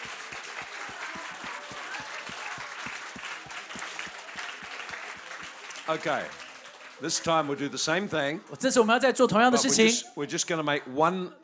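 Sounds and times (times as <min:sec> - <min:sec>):
audience clapping: 0:00.0 - 0:08.6
speech: 0:05.9 - 0:06.4, 0:07.0 - 0:11.4.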